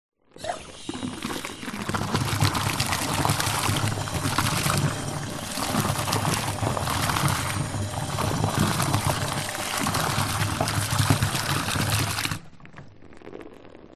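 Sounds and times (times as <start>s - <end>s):
water bubbles: 0.3s - 13.9s
household bathtub tap running into water: 0.4s - 12.4s.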